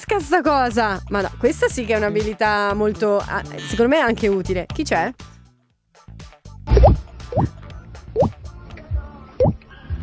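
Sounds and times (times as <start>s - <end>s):
speech: 0.1s - 5.3s, 6.8s - 7.6s
person imitating a water drop with the mouth: 6.8s - 7.6s.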